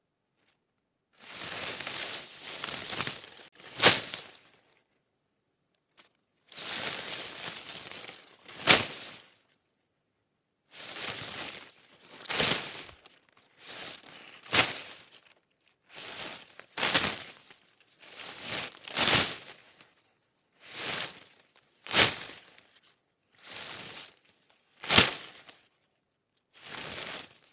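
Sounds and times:
large thick hedge leaves slapped against each other: 1.2s - 4.5s, 6.5s - 9.3s, 10.8s - 15.3s, 15.9s - 20.0s, 20.6s - 22.7s, 23.4s - 25.7s.

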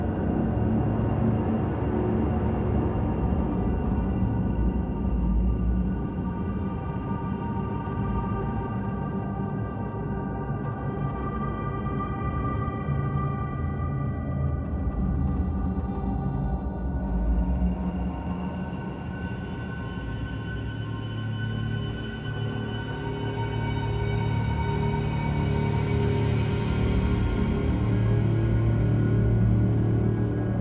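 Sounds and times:
dark ambience loop: 0.0s - 30.5s.

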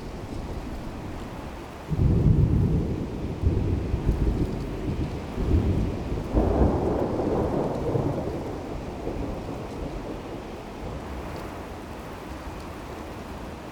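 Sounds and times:
distant thunder over plains: 0.4s - 11.7s.

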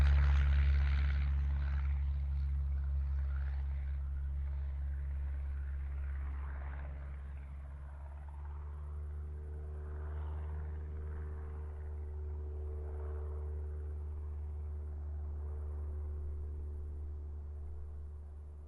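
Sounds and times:
Cessna 172 flying by outside: 0.0s - 18.6s.

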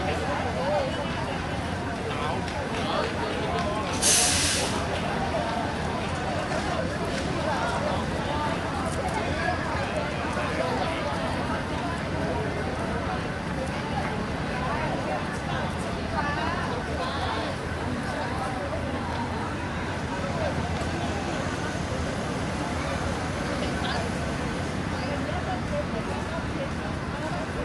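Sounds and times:
bus arriving and departing: 0.0s - 27.6s
crowd walla in Singapore: 0.0s - 27.6s
street traffic in Singapore: 0.0s - 27.6s.

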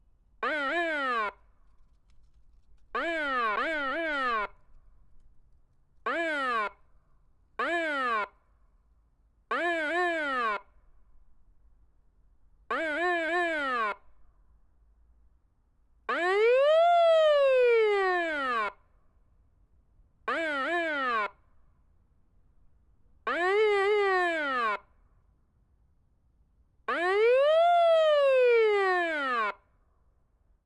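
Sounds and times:
police siren: 0.4s - 1.4s, 2.9s - 4.7s, 6.0s - 6.8s, 7.6s - 8.4s, 9.5s - 10.8s, 12.7s - 14.1s, 16.1s - 18.8s, 20.3s - 21.4s, 23.2s - 24.9s, 26.9s - 29.7s.

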